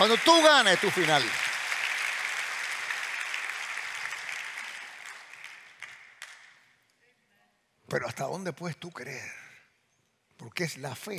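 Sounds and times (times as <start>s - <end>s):
speech: 0.0s - 1.4s, 7.9s - 9.4s, 10.4s - 11.1s
audience applause: 0.0s - 6.6s.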